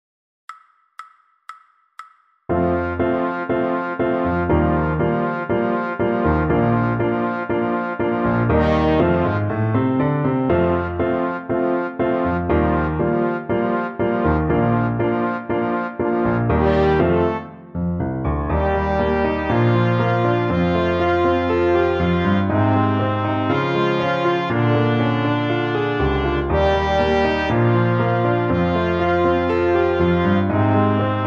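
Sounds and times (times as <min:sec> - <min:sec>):
trombone: 0:02.6 - 0:17.7, 0:18.5 - 0:31.2.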